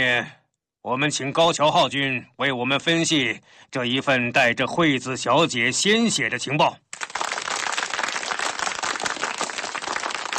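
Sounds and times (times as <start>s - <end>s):
speech: 0.0s - 7.1s
applause: 6.9s - 10.3s.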